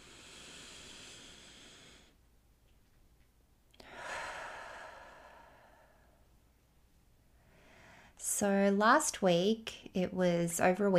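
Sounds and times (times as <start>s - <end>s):
slow deep breath: 0.0s - 2.2s, 3.8s - 6.3s, 7.4s - 8.2s
speech: 8.4s - 10.9s.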